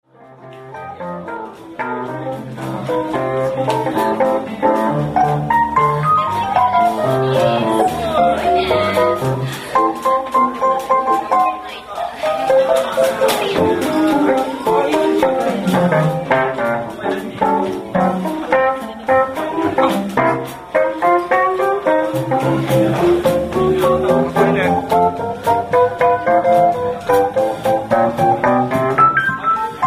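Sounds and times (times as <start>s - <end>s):
piano: 0.0s - 29.8s.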